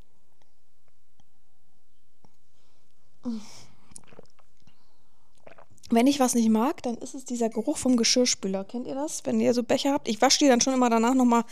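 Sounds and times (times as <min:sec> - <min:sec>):
speech: 0:03.2 - 0:03.6, 0:05.9 - 0:11.5
person sipping a drink: 0:03.2 - 0:05.9.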